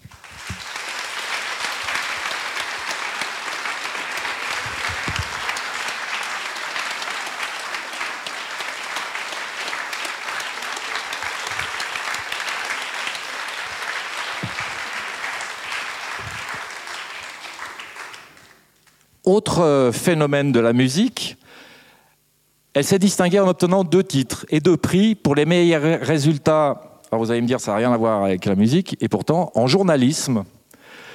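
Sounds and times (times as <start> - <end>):
audience applause welcoming a musician guest: 0.0 - 18.7
speech: 19.3 - 21.4, 22.8 - 30.6.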